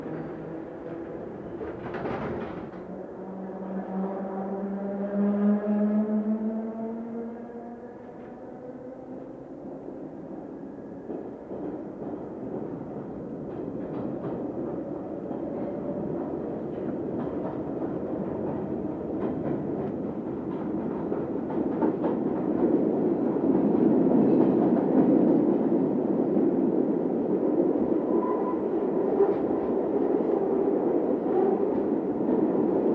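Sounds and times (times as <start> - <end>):
London Underground train: 0.0 - 32.9.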